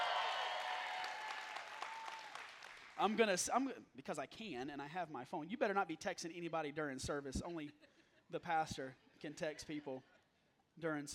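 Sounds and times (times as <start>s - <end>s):
audience applauding: 0.0s - 3.2s
speech: 3.0s - 10.1s, 10.8s - 11.1s.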